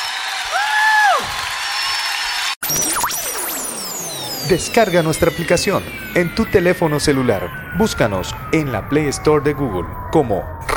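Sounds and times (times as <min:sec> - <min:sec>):
crowd applauding: 0:00.0 - 0:02.6
speech: 0:04.5 - 0:10.6.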